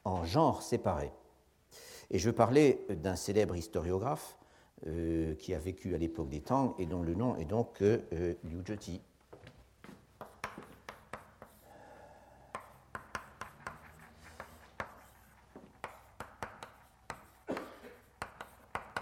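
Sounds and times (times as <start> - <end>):
speech: 0.1 - 9.1
handwriting of a simplified Chinese character: 10.2 - 11.7, 12.5 - 19.0.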